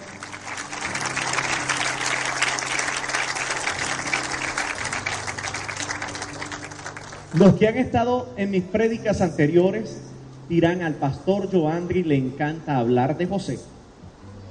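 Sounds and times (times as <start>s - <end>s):
audience applauding loudly: 0.0s - 7.6s
speech: 7.4s - 13.7s.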